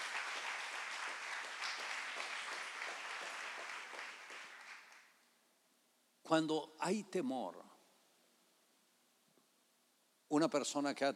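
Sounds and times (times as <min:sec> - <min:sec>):
audience applause: 0:00.0 - 0:05.1
speech: 0:06.3 - 0:07.7, 0:10.3 - 0:11.1.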